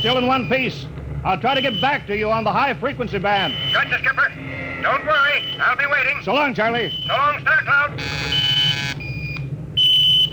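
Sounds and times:
automatic radio sender beeping tracking signal: 0.0s - 0.8s, 1.4s - 10.3s
speech: 0.0s - 8.5s
low hum: 0.0s - 10.3s.

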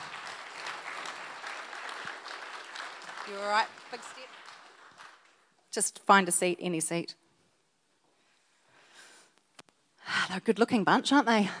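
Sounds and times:
audience applause welcoming people onto the stage: 0.0s - 5.5s
speech: 3.3s - 4.5s, 5.8s - 7.2s, 10.3s - 11.5s.

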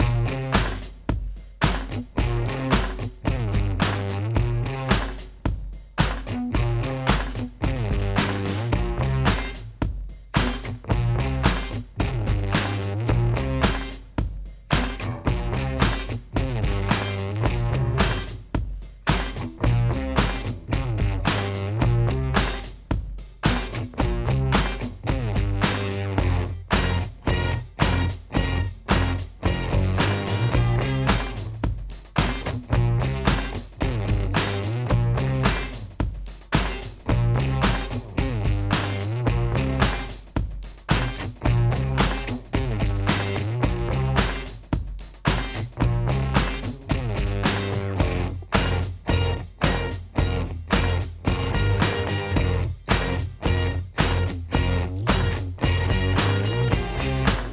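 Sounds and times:
instrumental music: 0.1s - 57.5s.

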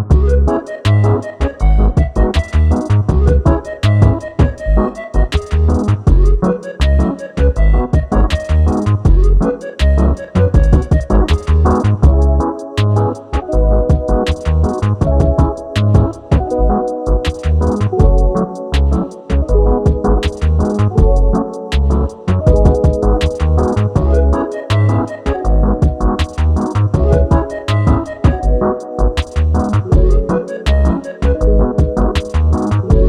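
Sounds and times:
samba rhythm in C sharp minor: 0.1s - 33.0s.

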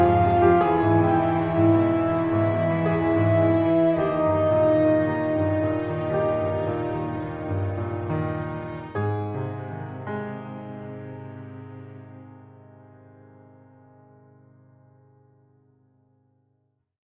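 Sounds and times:
orchestral music: 0.0s - 12.4s.

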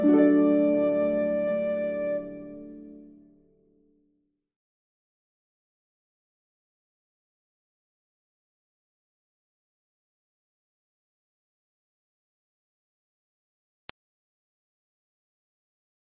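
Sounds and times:
flute: 0.0s - 3.2s
harp: 0.0s - 3.2s.

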